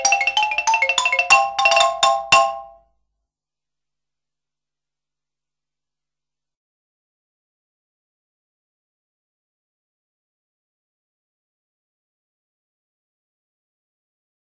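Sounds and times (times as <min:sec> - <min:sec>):
xylophone percussion: 0:00.0 - 0:02.8.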